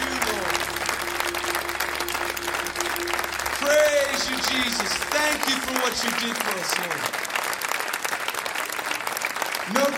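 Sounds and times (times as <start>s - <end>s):
low sustained tone: 0.0s - 6.8s
congregation clapping during a worship service: 0.0s - 9.9s
speech: 4.7s - 7.2s, 9.7s - 9.9s.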